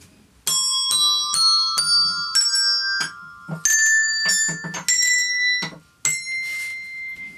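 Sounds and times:
colored bells playing a rising musical scale: 0.5s - 7.3s.

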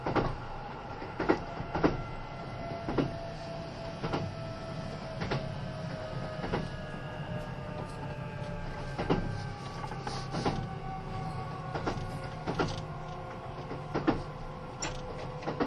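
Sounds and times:
Kintetsu 80000 series Hinotori train rumble: 0.0s - 15.6s
sharp rail-joint clicks: 0.0s - 15.6s.

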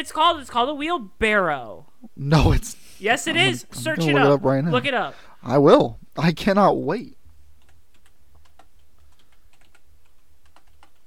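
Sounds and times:
speech: 0.0s - 7.2s
typing on a computer keyboard with one hand: 7.6s - 11.0s.

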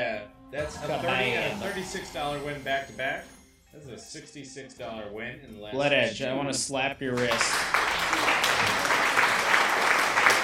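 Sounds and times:
speech: 0.0s - 10.1s
applause sound effect played on a slots stream: 7.1s - 10.4s.

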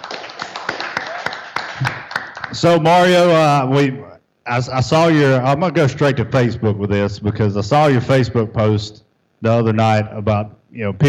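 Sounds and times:
applause for the player of the week: 0.0s - 2.7s
speech: 2.5s - 11.0s.

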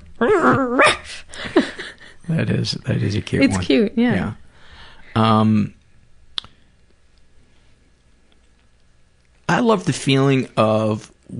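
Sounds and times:
person imitating a dog growling in a dream: 0.2s - 1.1s
speech: 2.3s - 4.4s, 5.2s - 5.8s, 9.6s - 11.3s.

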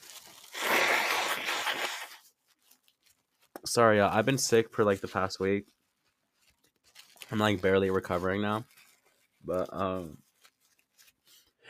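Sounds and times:
person blowing nose: 0.4s - 2.2s
speech: 3.6s - 5.8s, 7.3s - 8.8s, 9.4s - 10.2s.

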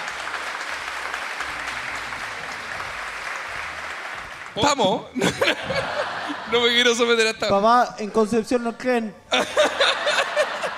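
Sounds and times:
applause: 0.0s - 5.0s
speech: 4.6s - 9.8s
laughter: 5.0s - 7.2s, 9.3s - 10.7s.

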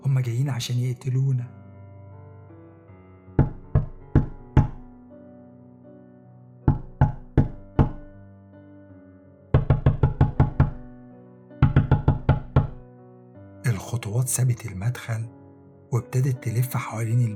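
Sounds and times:
speech: 0.1s - 1.6s, 14.2s - 17.3s
knocking on a window: 3.4s - 4.9s, 6.7s - 8.1s, 9.6s - 10.9s, 11.6s - 12.8s.

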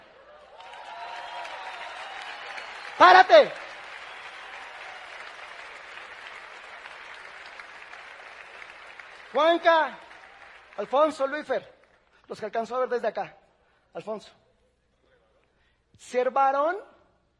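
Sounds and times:
audience applause: 0.0s - 11.3s
speech: 3.0s - 3.6s, 9.4s - 10.0s, 10.8s - 14.4s, 16.0s - 16.9s.

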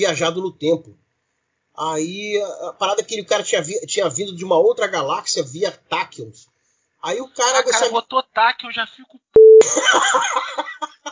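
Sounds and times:
speech: 0.0s - 1.0s, 1.8s - 11.0s
censor beep: 9.4s - 9.7s
laughter: 9.6s - 11.1s.

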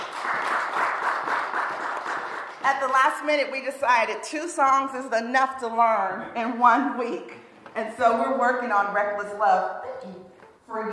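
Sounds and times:
round of applause for worship team: 0.0s - 2.6s
speech: 2.6s - 10.9s.

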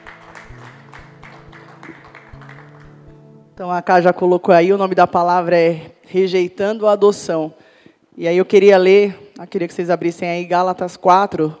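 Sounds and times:
audience applauding: 0.0s - 3.2s
speech: 3.6s - 7.6s, 8.2s - 11.5s.

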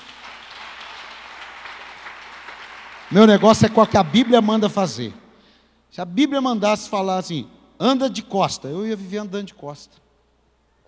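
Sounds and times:
audience applause: 0.0s - 4.7s
speech: 3.1s - 5.2s, 5.9s - 10.0s.

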